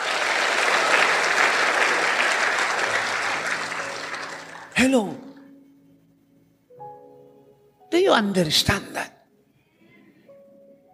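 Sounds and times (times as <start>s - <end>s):
audience applauding: 0.0s - 5.4s
speech: 4.8s - 5.3s, 8.0s - 9.2s.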